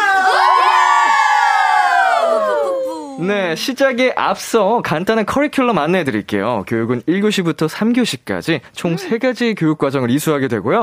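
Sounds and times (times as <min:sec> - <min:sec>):
group of voices shouting and cheering: 0:00.0 - 0:03.4
speech: 0:03.2 - 0:10.8.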